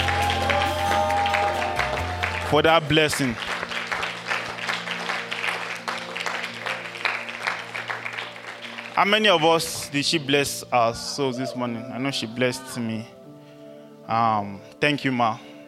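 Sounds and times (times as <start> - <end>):
audience clapping: 0.0 - 9.9
speech: 2.5 - 3.5, 9.0 - 13.2, 14.1 - 15.5.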